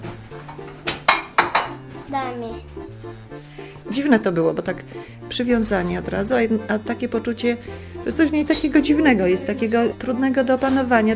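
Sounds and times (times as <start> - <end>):
plate clattering against other dishes: 0.0 - 1.8
speech: 3.9 - 11.1.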